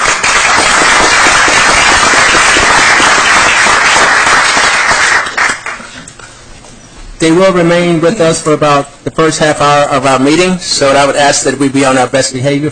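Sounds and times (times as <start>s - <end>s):
applause for Scout Troop 342 at a meeting: 0.0s - 6.0s
speech: 7.2s - 12.7s.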